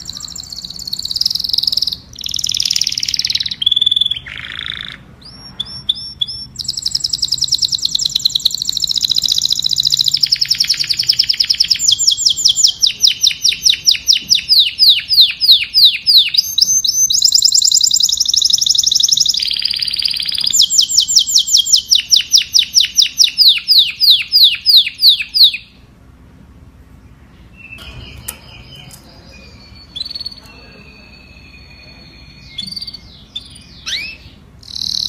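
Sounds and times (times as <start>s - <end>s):
domestic canary singing: 0.0s - 26.0s, 26.8s - 35.0s.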